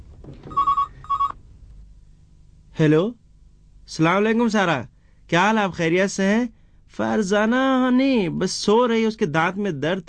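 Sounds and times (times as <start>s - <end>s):
telephone ringing: 0.4s - 1.4s
speech: 2.8s - 3.2s, 3.9s - 10.0s.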